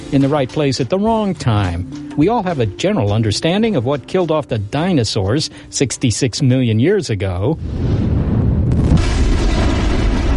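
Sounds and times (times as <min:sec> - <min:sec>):
speech: 0:00.1 - 0:08.3
asteroid crashing into Earth: 0:07.6 - 0:10.3.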